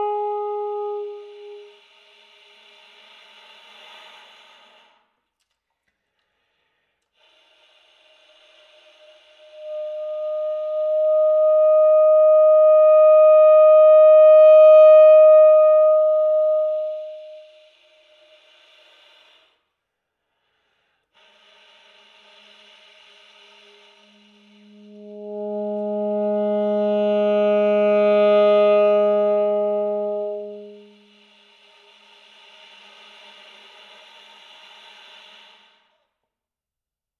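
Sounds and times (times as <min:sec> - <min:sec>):
alto saxophone air tones turning into notes on low, middle and high tones: 0:00.0 - 0:03.1, 0:07.2 - 0:19.0, 0:21.2 - 0:33.6.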